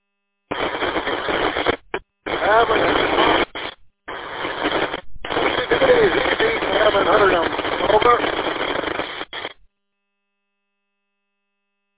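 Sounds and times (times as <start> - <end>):
crackling radio transmission static: 0.5 - 9.6
garbled voice over radio: 2.3 - 3.7, 4.5 - 9.1.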